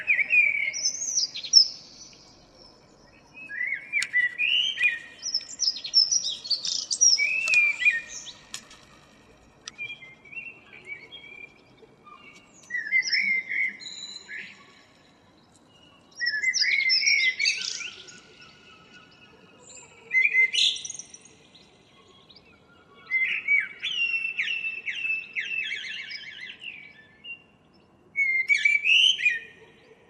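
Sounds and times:
common blackbird song: 0:00.0 - 0:30.0.

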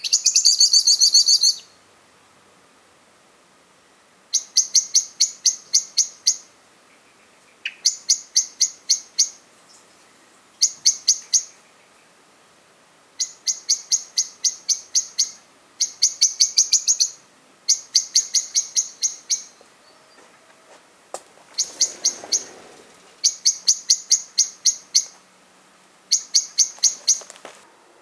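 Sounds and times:
common blackbird chink calls: 0:00.0 - 0:01.8, 0:04.3 - 0:12.2, 0:13.2 - 0:20.5, 0:21.5 - 0:25.3, 0:26.1 - 0:27.4.

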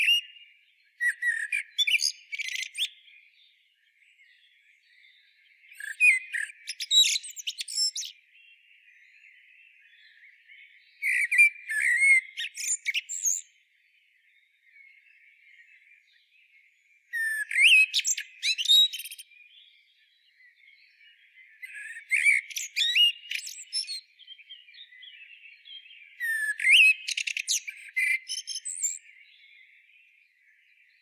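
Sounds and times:
Eurasian blackbird song: 0:00.0 - 0:31.0
Eurasian blackbird chinking calls: 0:01.0 - 0:03.0, 0:05.7 - 0:08.2, 0:17.1 - 0:19.2, 0:21.6 - 0:25.4, 0:26.0 - 0:29.2.

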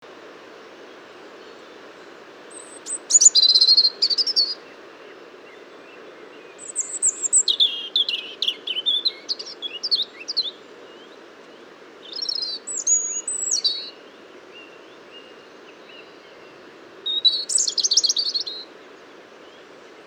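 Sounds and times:
European robin singing: 0:02.5 - 0:04.7, 0:06.4 - 0:11.1, 0:12.0 - 0:14.0, 0:17.0 - 0:18.7.

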